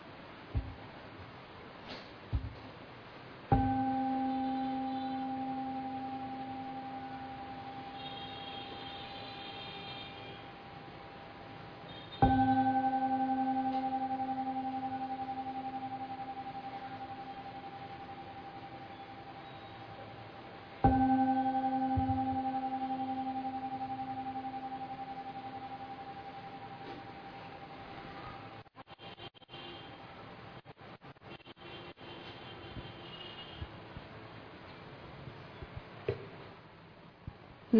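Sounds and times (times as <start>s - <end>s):
meditation bell strikes: 3.5s - 28.6s.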